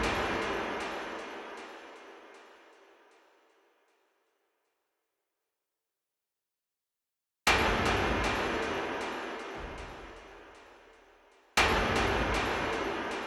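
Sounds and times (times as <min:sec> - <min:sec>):
heavy electronic percussion: 0:00.0 - 0:03.4, 0:07.5 - 0:13.2.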